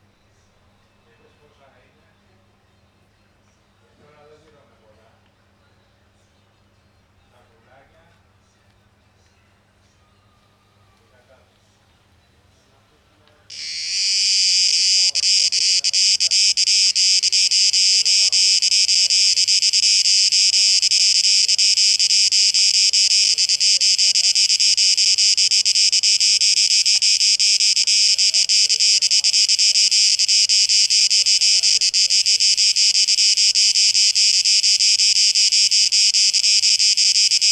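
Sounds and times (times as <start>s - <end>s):
cicada buzzing: 13.5s - 37.4s
faint twittering: 13.5s - 37.4s.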